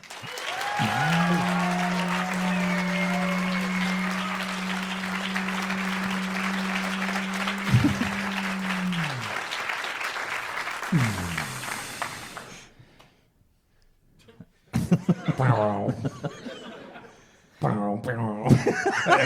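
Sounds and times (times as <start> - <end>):
audience applause: 0.0 - 12.7
laughter: 0.1 - 11.8, 14.8 - 17.2, 18.5 - 19.2.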